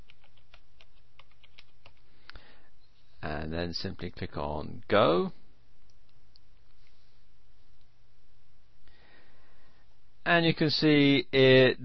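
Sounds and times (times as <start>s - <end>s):
computer keyboard typing a keyword: 0.0s - 2.0s
speech: 3.4s - 5.4s, 10.3s - 11.8s.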